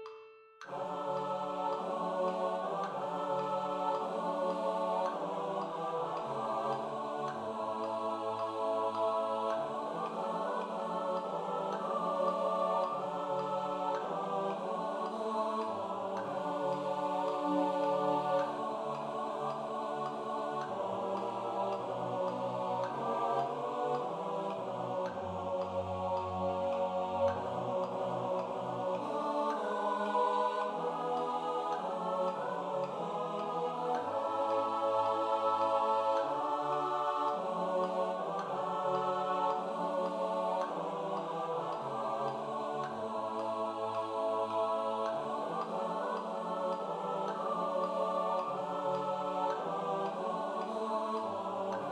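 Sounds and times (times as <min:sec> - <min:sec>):
SATB four-part choir singing: 0:00.6 - 0:51.8.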